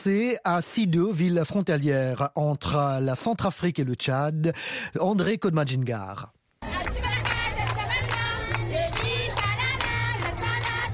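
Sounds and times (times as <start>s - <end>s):
speech: 0.0s - 7.0s
crowd singing a welcome song in Sido: 6.6s - 10.9s.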